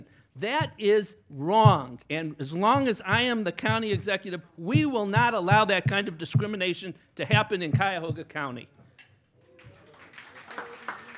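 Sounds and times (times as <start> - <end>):
speech: 0.4 - 8.8
audience applause: 9.6 - 11.1.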